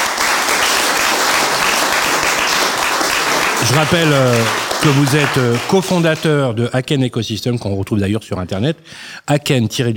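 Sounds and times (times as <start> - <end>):
audience applause: 0.0 - 6.4
speech: 3.7 - 9.9.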